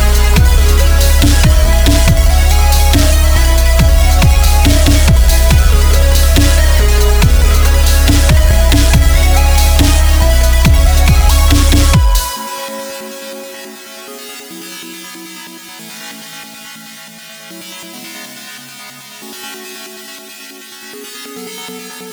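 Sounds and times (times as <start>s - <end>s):
wall of sawtooth synth waves: 0.0s - 14.6s.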